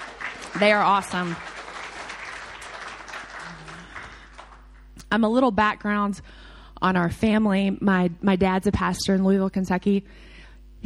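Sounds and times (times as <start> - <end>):
audience applause: 0.0 - 4.9
speech: 0.6 - 1.5, 5.1 - 10.8.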